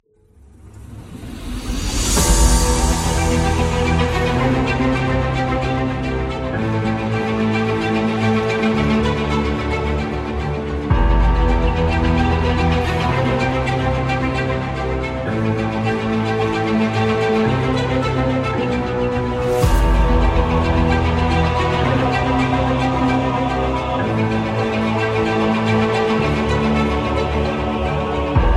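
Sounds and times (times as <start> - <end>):
epic movie trailer music: 0.2 - 28.5.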